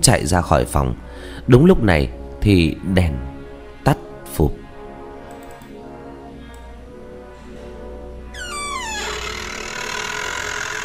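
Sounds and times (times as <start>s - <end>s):
speech: 0.0s - 4.6s
cabinet doors creaking open: 8.3s - 10.8s.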